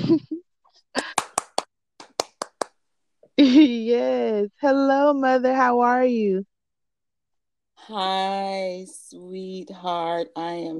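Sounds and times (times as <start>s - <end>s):
speech: 0.1s - 0.4s, 3.4s - 6.5s, 7.8s - 10.7s
applause sound effect: 1.0s - 2.8s.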